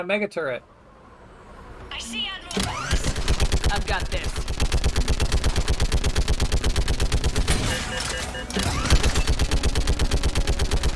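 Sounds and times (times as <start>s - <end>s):
speech: 0.0s - 0.7s, 2.0s - 2.8s, 3.7s - 4.6s, 7.7s - 9.2s
automatic gunfire shooting enemies in a video game: 2.9s - 10.9s.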